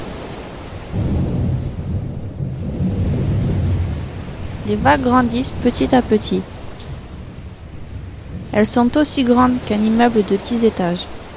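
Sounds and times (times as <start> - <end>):
heavy rain pouring in a thunderstorm: 0.0 - 11.3
deep continuous rumble of thunder: 0.8 - 11.3
speech: 4.7 - 6.5, 8.6 - 11.1.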